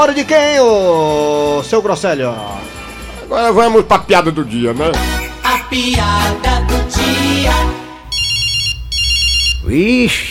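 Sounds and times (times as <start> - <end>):
speech: 0.0 - 7.8, 9.7 - 10.2
telephone ringing with electronic trill: 8.0 - 9.6.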